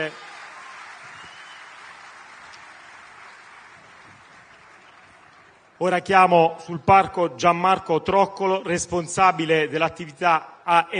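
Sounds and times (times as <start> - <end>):
speech: 0.0 - 0.3, 5.8 - 10.9
audience applause: 0.0 - 5.8.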